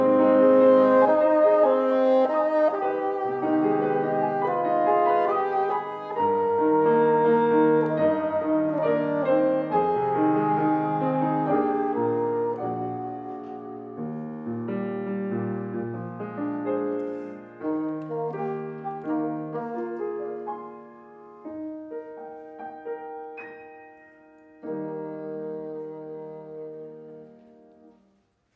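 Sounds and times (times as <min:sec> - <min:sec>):
bassoon: 0:00.0 - 0:14.7, 0:16.6 - 0:21.0, 0:24.6 - 0:28.0
piano: 0:00.0 - 0:28.5.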